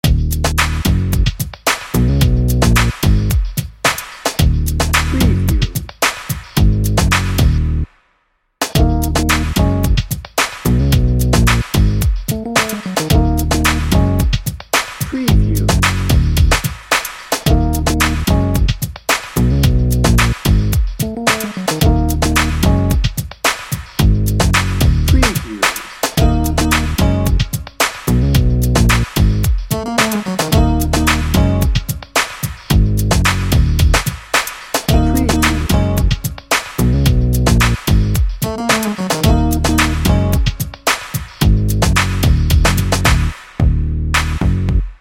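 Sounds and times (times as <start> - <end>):
cool funk music bed: 0.0 - 7.9, 8.6 - 44.9.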